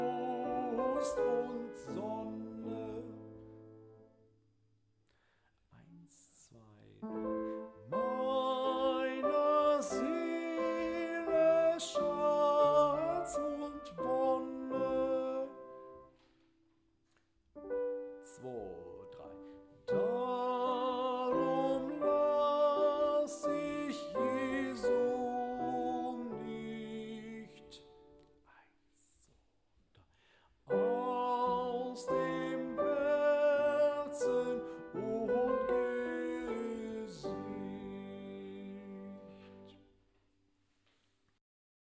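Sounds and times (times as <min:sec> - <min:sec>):
soprano voice: 0:00.0 - 0:03.6, 0:07.0 - 0:15.9, 0:18.2 - 0:28.0, 0:30.7 - 0:39.7.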